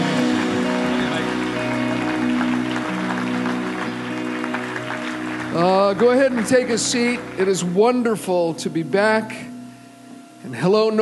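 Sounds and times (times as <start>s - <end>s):
church congregation applauding to welcome the pastor at a Sunday morning service: 0.0s - 8.5s
speech: 5.6s - 9.5s, 10.4s - 10.9s.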